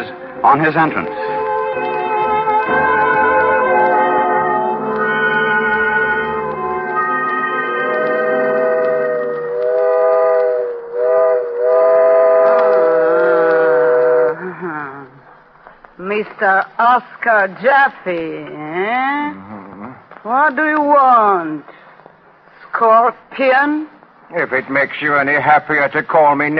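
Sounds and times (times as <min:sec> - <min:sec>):
low train rumble: 0:00.0 - 0:15.7
speech: 0:00.4 - 0:01.3, 0:16.4 - 0:19.5, 0:20.2 - 0:21.8, 0:22.8 - 0:26.5
train whistle: 0:01.1 - 0:14.5.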